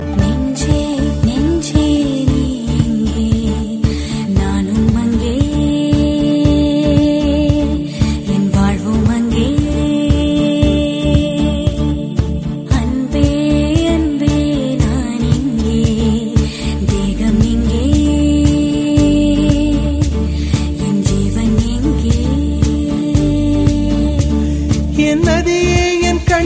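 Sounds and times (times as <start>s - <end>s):
instrumental music: 0.0s - 26.4s.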